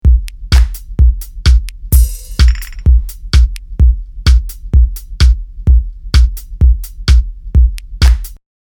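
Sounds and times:
128 BPM 4/4 drum beat: 0.0s - 8.4s.

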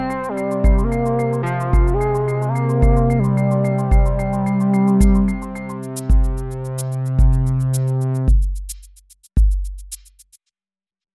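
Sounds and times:
synth: 0.0s - 8.3s.

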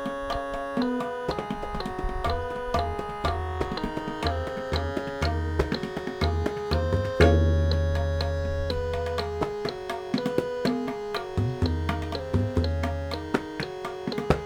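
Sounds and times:
tabla playing: 0.0s - 14.4s
8-bit generated raga melody: 4.2s - 14.4s.

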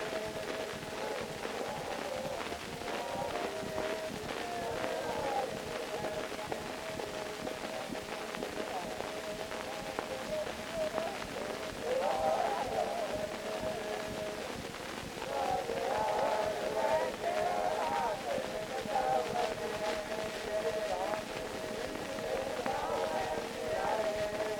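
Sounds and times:
chorus singing on an Edison Blue Amberol cylinder recording: 0.0s - 24.5s.

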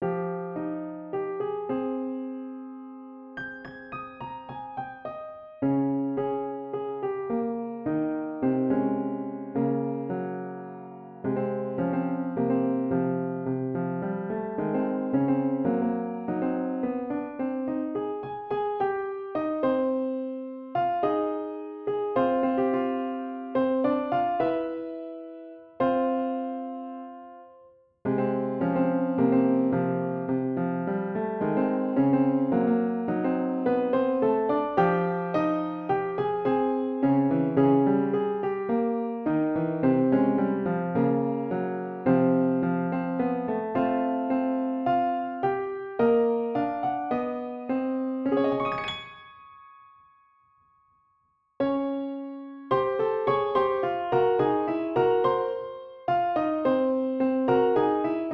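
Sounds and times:
piano music: 0.0s - 58.3s.

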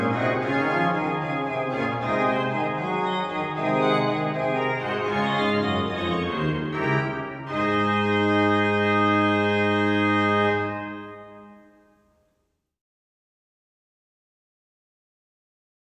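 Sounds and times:
organ playing a fughetta: 0.0s - 11.7s.

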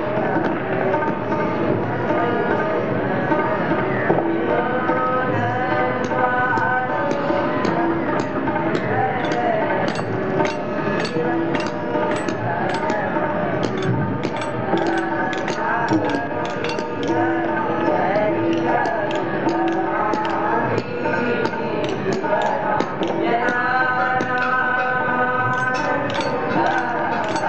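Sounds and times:
temple song in Laxman Jhula Rishikesh: 0.0s - 27.4s
industrial sounds in Laxman Jhula Rishikesh: 5.6s - 27.4s.

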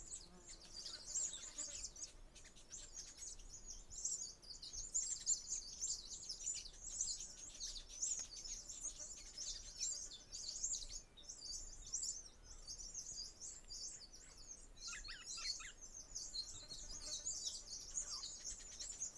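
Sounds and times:
birds of Bruny Island Australia: 0.0s - 19.1s.

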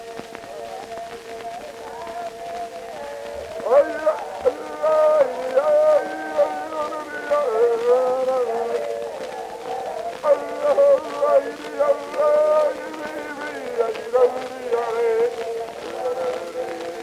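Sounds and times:
Tahitian chorus singing on Edison Blue Amberol cylinder: 0.0s - 17.0s.

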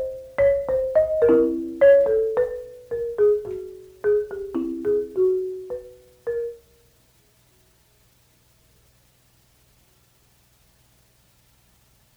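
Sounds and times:
marimba interlude: 0.0s - 6.7s.

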